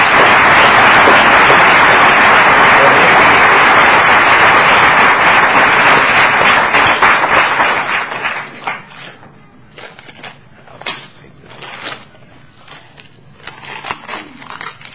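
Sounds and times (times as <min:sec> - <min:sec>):
audience applause: 0:00.0 - 0:08.9.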